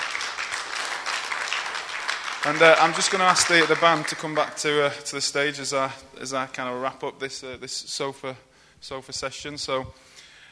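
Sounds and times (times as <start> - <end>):
audience applause: 0.0 - 4.7
speech: 2.4 - 10.1.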